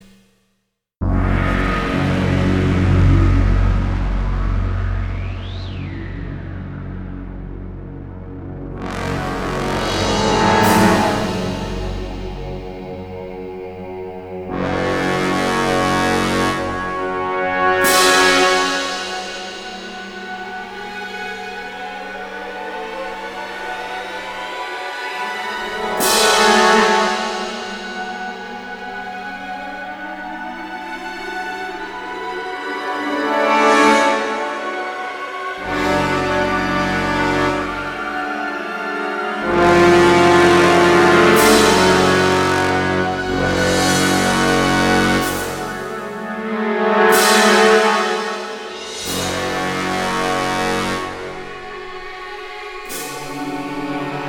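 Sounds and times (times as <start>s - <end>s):
battle music in F sharp minor: 1.0s - 54.2s.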